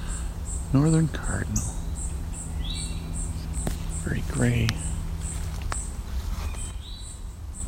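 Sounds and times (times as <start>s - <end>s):
eastern towhee calling: 0.0s - 7.6s
speech: 0.7s - 1.8s, 4.1s - 4.9s.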